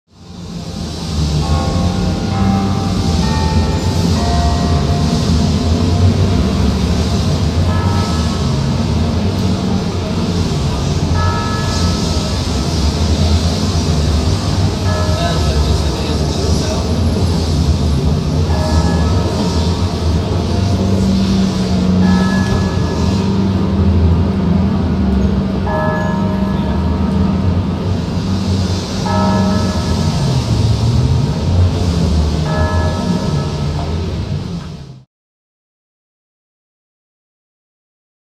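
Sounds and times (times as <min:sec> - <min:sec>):
clock tower on Market Street: 0:00.1 - 0:35.1.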